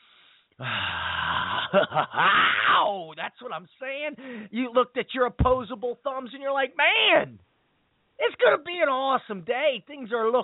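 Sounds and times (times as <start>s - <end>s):
voice imitating a deep breath: 0.0s - 2.9s
speech: 0.6s - 1.0s, 1.7s - 7.5s, 8.2s - 10.4s.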